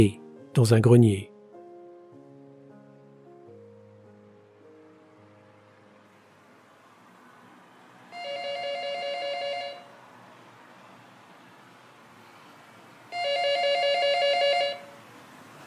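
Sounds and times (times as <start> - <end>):
speech: 0.0 - 1.3
telephone ringing with electronic trilling rings: 8.1 - 9.9, 13.1 - 14.9.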